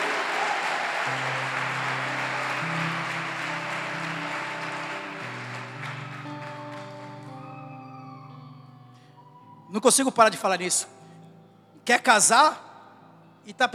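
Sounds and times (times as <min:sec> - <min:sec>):
audience applauding: 0:00.0 - 0:08.6
speech: 0:09.7 - 0:11.0, 0:11.9 - 0:12.6, 0:13.5 - 0:13.7.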